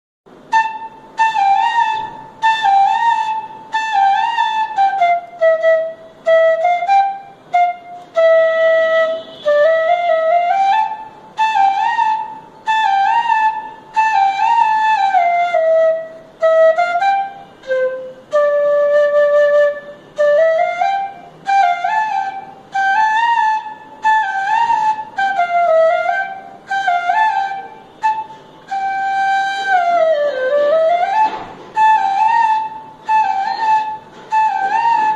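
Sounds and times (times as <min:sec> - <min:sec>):
flute ringtone: 0:00.5 - 0:35.1.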